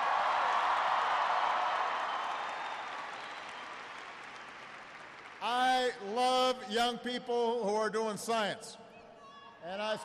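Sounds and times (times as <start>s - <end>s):
audience applause: 0.0s - 5.5s
speech: 5.9s - 8.9s, 9.6s - 10.0s.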